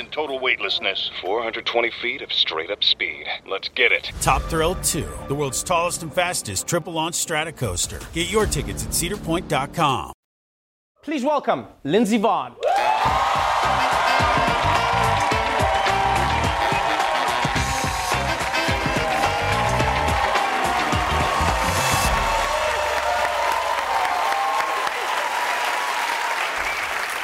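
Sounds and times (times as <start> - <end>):
speech: 0.0 - 10.2, 11.0 - 13.9
audience applause: 12.6 - 27.2.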